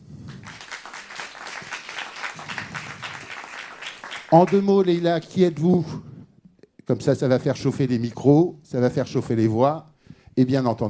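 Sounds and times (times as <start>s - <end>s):
audience applause: 0.2s - 5.3s
speech: 4.3s - 6.1s, 6.9s - 10.8s.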